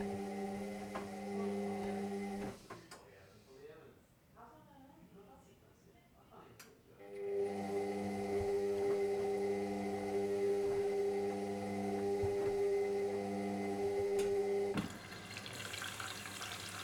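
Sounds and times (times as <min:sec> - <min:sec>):
washing machine: 0:00.0 - 0:02.9, 0:07.0 - 0:16.8.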